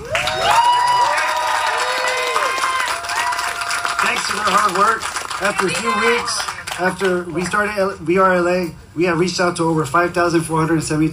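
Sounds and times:
round of applause: 0.0s - 7.5s
speech: 4.5s - 11.1s.

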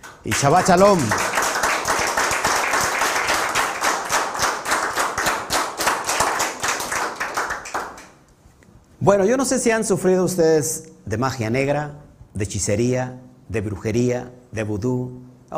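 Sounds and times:
audience applause: 0.0s - 8.1s
speech: 0.2s - 1.3s, 9.0s - 15.5s.

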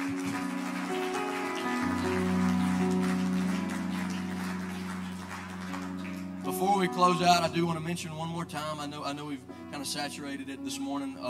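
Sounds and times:
audience hand clap of praise: 0.0s - 7.5s
speech: 6.8s - 11.2s.

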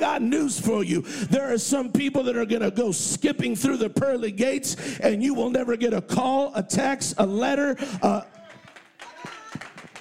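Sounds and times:
speech: 0.0s - 8.4s
a few people clapping: 8.0s - 10.0s.

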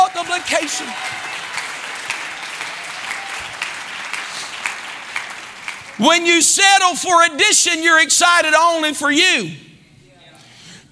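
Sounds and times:
audience clapping hands: 0.0s - 6.5s
speech: 0.4s - 1.2s, 6.0s - 9.7s.

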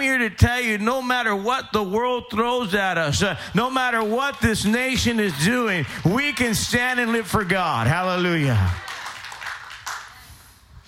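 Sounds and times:
speech: 0.0s - 8.9s
audience clapping: 3.6s - 10.5s.

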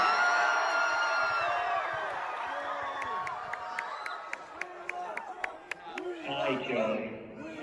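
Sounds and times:
large crowd cheering and whooping: 0.0s - 5.7s
speech: 6.5s - 7.2s.

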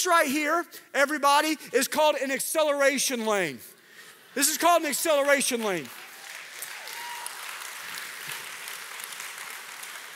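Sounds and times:
speech: 0.0s - 3.8s, 4.4s - 6.0s
crowd clapping: 5.2s - 10.1s.

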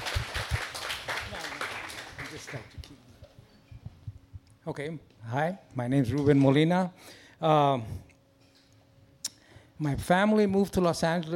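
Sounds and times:
audience applause: 0.0s - 2.8s
speech: 2.4s - 2.8s, 4.7s - 8.1s, 9.8s - 11.3s.

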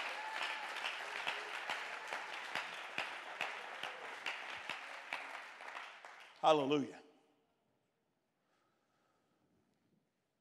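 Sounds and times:
audience clapping hands: 0.0s - 6.8s
speech: 6.4s - 7.0s.

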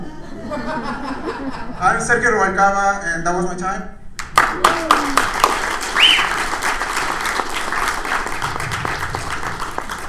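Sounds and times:
laughter: 0.0s - 1.8s
speech: 0.5s - 5.2s
audience clapping at a stand-up comedy show: 4.2s - 10.0s.

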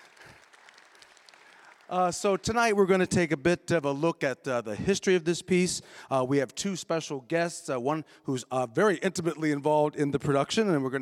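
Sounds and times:
audience applause: 0.0s - 2.5s
speech: 1.9s - 10.9s.

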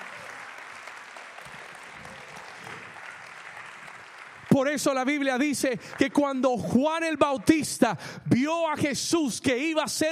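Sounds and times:
audience applauding loudly: 0.0s - 8.0s
speech: 4.6s - 10.1s.

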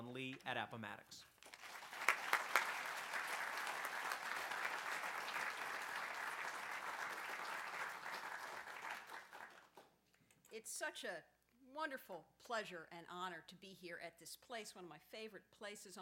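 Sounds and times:
speech: 0.2s - 1.3s, 10.6s - 16.0s
audience applause welcoming a speaker to a Virginia historical society lecture: 1.4s - 9.9s.

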